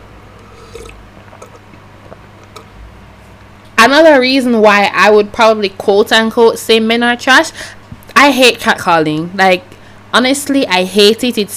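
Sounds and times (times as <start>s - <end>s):
sipping juice: 0.3s - 2.8s
speech: 3.9s - 11.5s.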